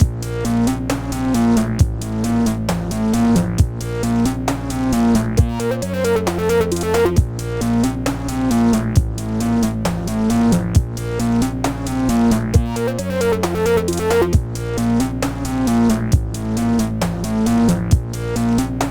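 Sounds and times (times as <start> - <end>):
remix music at 134 BPM: 0.0 - 18.8.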